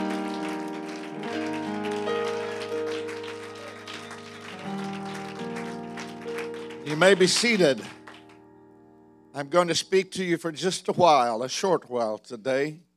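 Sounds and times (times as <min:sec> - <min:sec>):
audience clapping hands: 0:00.0 - 0:08.4
speech: 0:06.9 - 0:08.0, 0:09.4 - 0:12.9.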